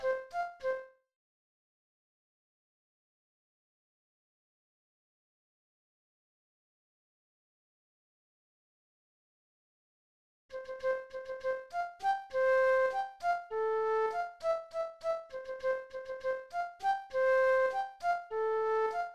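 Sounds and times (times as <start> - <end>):
flute playing: 0.0 - 0.9, 10.6 - 19.1.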